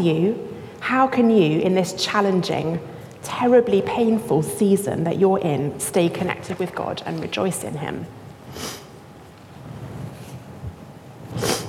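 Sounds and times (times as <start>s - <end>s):
speech: 0.0s - 8.7s
person sniffing: 8.5s - 8.9s, 11.3s - 11.6s.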